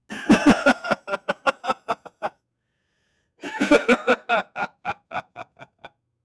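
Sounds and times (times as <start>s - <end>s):
man chuckling in amusement: 0.1s - 2.3s, 3.4s - 5.9s.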